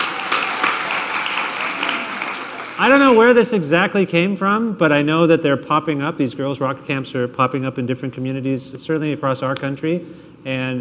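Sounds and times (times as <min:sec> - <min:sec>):
crowd applauding: 0:00.0 - 0:03.4
speech: 0:02.8 - 0:10.7.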